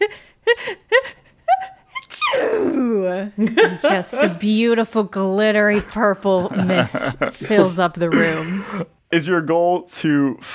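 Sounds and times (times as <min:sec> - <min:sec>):
person imitating a mighty echoing sneeze: 0:02.0 - 0:03.3, 0:07.5 - 0:08.9
laughter: 0:03.3 - 0:04.7, 0:05.6 - 0:08.8
speech: 0:03.4 - 0:10.5.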